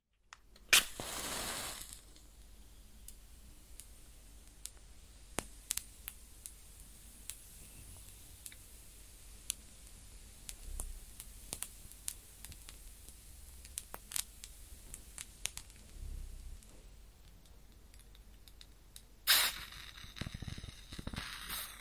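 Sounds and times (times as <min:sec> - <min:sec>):
match struck with a bright flare: 0:00.6 - 0:02.5, 0:03.8 - 0:08.7, 0:09.4 - 0:15.9, 0:17.9 - 0:21.8
match flame hissing and crackling: 0:00.6 - 0:21.8
match flame sizzling as put out: 0:00.7 - 0:16.7, 0:19.2 - 0:21.8.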